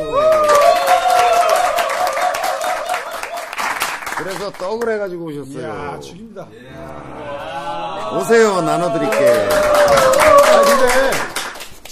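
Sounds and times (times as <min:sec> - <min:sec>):
applause from people in the room: 0:00.0 - 0:05.0, 0:08.3 - 0:11.9
speech: 0:04.3 - 0:07.4, 0:08.1 - 0:11.9.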